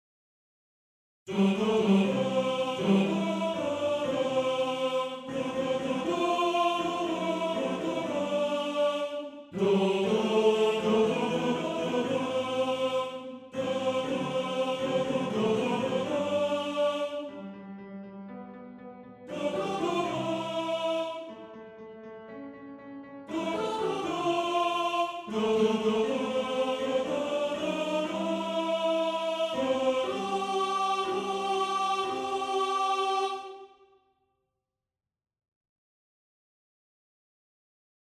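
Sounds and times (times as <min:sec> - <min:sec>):
tenor singing: 0:01.3 - 0:17.4, 0:19.3 - 0:21.6, 0:23.3 - 0:33.7.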